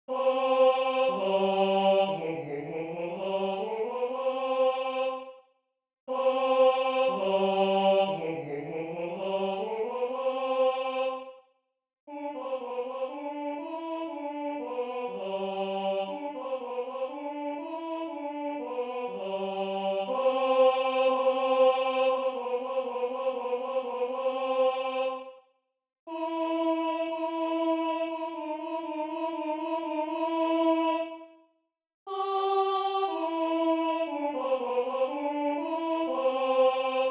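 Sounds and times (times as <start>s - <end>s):
first tenor voice singing: 0.1s - 5.3s, 6.1s - 11.3s, 12.1s - 25.3s, 26.1s - 31.2s, 32.1s - 37.0s.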